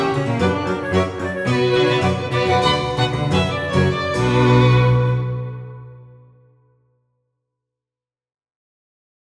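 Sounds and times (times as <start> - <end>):
instrumental music piece: 0.0 - 6.8.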